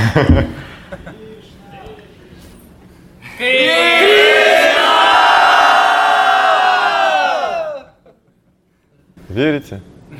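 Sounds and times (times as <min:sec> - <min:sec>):
speech: 0:00.1 - 0:00.7, 0:09.4 - 0:09.9
crowd shouting together: 0:03.4 - 0:08.0.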